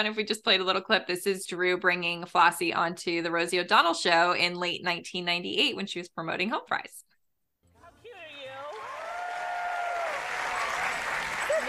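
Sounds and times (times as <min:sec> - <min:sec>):
speech: 0:00.0 - 0:07.1
talk show studio audience applause: 0:08.1 - 0:11.6.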